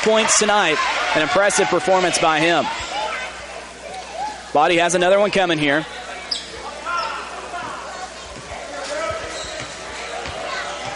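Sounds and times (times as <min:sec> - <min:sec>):
speech: 0:00.0 - 0:02.9, 0:04.5 - 0:06.0
low crowd noise: 0:00.0 - 0:10.9
basketball dribbled at the free throw line during a game: 0:09.1 - 0:10.9.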